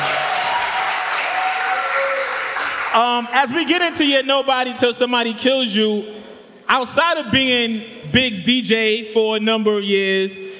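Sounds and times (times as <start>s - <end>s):
crowd applause and cheering for a DJ: 0.0s - 3.3s
speech: 2.9s - 10.5s.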